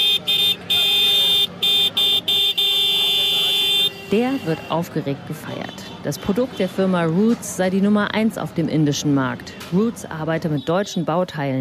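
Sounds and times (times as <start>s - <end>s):
vehicle horn honking: 0.0s - 4.8s
speech: 4.1s - 11.5s.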